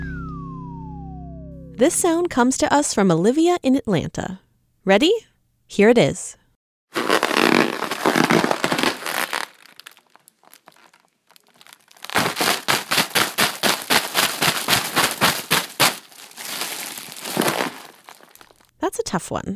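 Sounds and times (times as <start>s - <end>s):
speech: 1.8s - 7.2s, 19.1s - 19.5s
deflated Mylar balloon crinkling while being handled: 6.9s - 18.7s.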